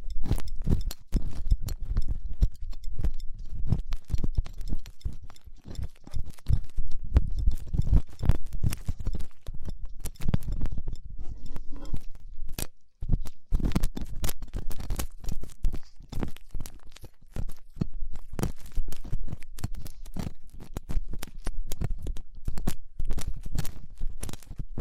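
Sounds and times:
ear cleaning scratches with latex gloves, dental pick and cotton swabs: 0.0s - 24.7s.

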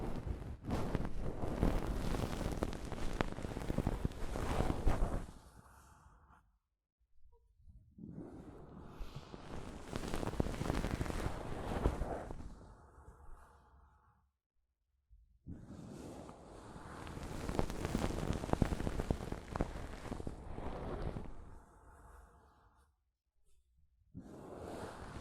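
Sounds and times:
soft fabric brushing a microphone: 0.0s - 5.5s, 9.0s - 12.6s, 17.0s - 21.5s.

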